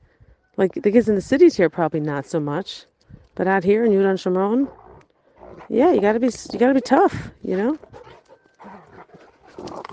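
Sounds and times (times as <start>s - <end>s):
speech: 0.6s - 4.8s, 5.7s - 7.9s
dogs fighting in Judea and Samaria, snarling and growling: 3.7s - 9.9s.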